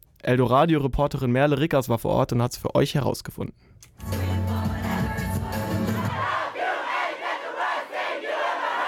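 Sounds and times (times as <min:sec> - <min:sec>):
speech: 0:00.2 - 0:04.2
loud bass-heavy pop music: 0:04.0 - 0:06.3
hundreds of party fans shouting and singing: 0:04.1 - 0:08.8.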